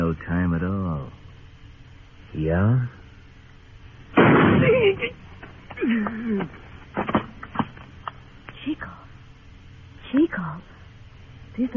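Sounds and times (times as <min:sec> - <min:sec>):
speech: 0:00.1 - 0:01.2, 0:02.3 - 0:03.0, 0:04.6 - 0:05.2, 0:05.8 - 0:07.1, 0:10.1 - 0:10.7, 0:11.6 - 0:11.7
gunshot in a radio western drama: 0:04.2 - 0:04.8.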